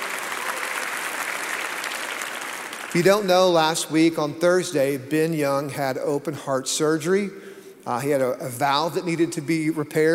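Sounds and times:
audience clapping: 0:00.0 - 0:03.6
speech: 0:02.9 - 0:10.1.

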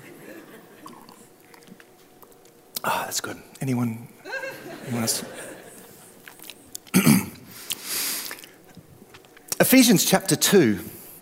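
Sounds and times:
laughter: 0:00.0 - 0:01.0, 0:04.2 - 0:06.2
low steady hum: 0:00.0 - 0:11.1
person drinking water: 0:00.8 - 0:02.4, 0:06.2 - 0:08.9
speech: 0:02.8 - 0:05.4, 0:09.6 - 0:11.0.

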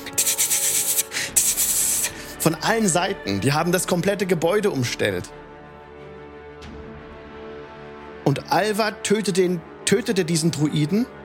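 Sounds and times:
scratching on windows: 0:00.0 - 0:02.2
speech: 0:02.4 - 0:05.4, 0:08.3 - 0:11.2.

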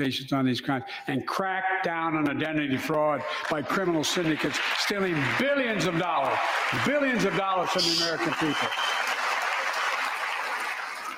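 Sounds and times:
speech: 0:00.0 - 0:09.0
audience applause, open hand clapping: 0:02.9 - 0:11.1.

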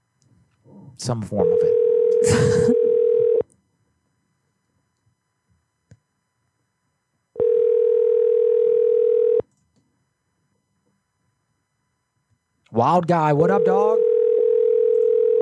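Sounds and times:
speech: 0:01.0 - 0:02.9, 0:12.8 - 0:14.0
phone line ringing on an unanswered call: 0:01.4 - 0:03.4, 0:07.4 - 0:09.4, 0:13.4 - 0:15.3.

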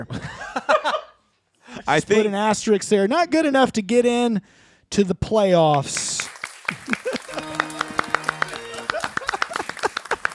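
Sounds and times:
speech: 0:00.0 - 0:00.6, 0:01.9 - 0:07.0
laughter: 0:00.0 - 0:01.2, 0:06.6 - 0:10.3
studio audience clapping: 0:05.7 - 0:10.3.

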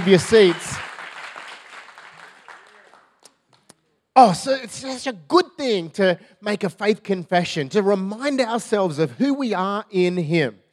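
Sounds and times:
speech: 0:00.0 - 0:00.9, 0:04.2 - 0:10.6
audience clapping in praise: 0:00.0 - 0:03.7.

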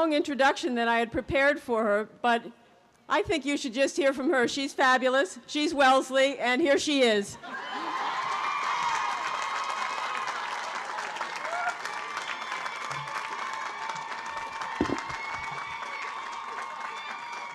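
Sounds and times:
speech: 0:00.0 - 0:07.8
crowd applause: 0:07.6 - 0:17.5.

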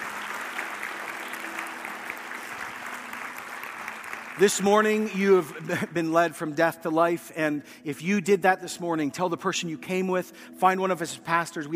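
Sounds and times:
audience cheering: 0:00.0 - 0:04.8
speech: 0:04.4 - 0:11.7.

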